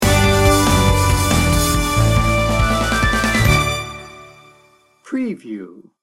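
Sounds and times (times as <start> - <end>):
victory music sting bumper: 0.0 - 4.4.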